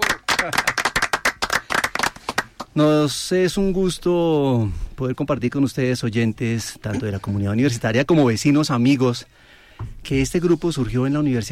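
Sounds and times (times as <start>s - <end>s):
applause: 0.0s - 2.7s
speech: 0.4s - 0.7s, 2.8s - 11.4s.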